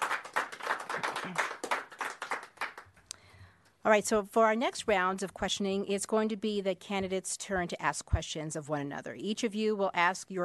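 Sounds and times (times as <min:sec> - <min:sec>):
audience applause: 0:00.0 - 0:02.9
speech: 0:01.2 - 0:01.5, 0:03.8 - 0:10.4.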